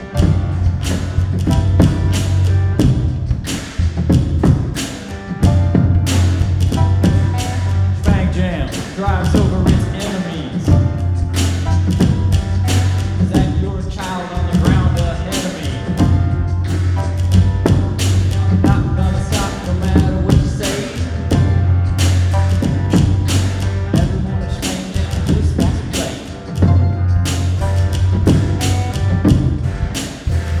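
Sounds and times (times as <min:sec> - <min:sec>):
beatbox: 0:00.0 - 0:30.5.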